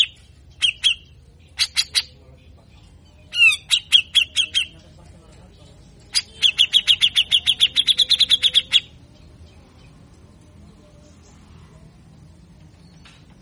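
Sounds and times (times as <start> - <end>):
grey-cheeked bulbul giving harsh chirps and rasping sweeps: 0.0 - 2.2, 3.3 - 4.8, 6.0 - 9.0.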